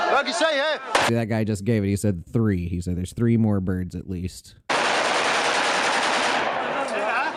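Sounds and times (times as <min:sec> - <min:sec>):
speech: 0:00.1 - 0:04.6
gunshots fired at birds: 0:04.7 - 0:07.2.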